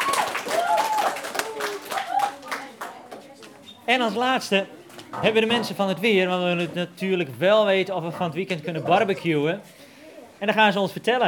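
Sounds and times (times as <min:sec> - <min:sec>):
audience applause: 0:00.0 - 0:03.0
speech: 0:03.9 - 0:09.8, 0:10.4 - 0:11.2.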